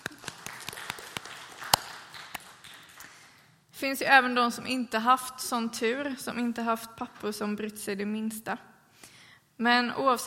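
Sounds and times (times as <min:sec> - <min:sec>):
sparse audience applause for fathers: 0:00.0 - 0:03.5
speech: 0:03.8 - 0:08.7, 0:09.6 - 0:10.2.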